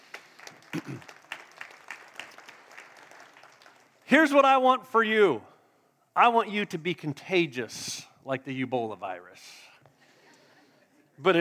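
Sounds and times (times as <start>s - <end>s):
audience clapping: 0.0s - 4.5s
speech: 4.1s - 5.5s, 6.2s - 9.7s, 11.2s - 11.3s.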